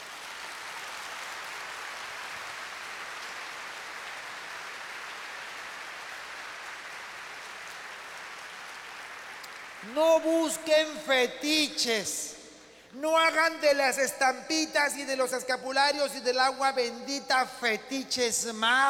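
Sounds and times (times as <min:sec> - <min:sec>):
large crowd applauding: 0:00.0 - 0:11.0
speech: 0:09.8 - 0:18.8.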